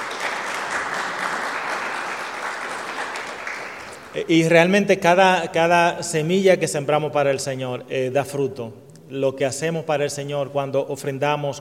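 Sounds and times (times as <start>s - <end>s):
church congregation applause for the Lord: 0.0s - 4.5s
speech: 4.2s - 11.6s.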